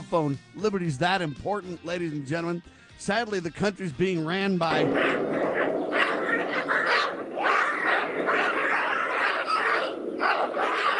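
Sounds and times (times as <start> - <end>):
speech: 0.1 - 5.6
screaming baboons chasing one another: 4.7 - 10.9.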